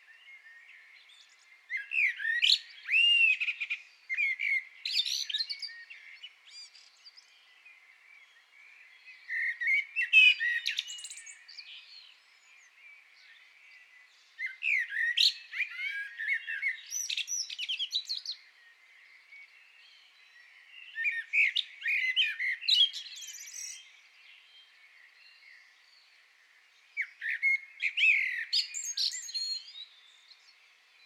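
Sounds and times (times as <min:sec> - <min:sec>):
common blackbird song: 0:00.0 - 0:31.0.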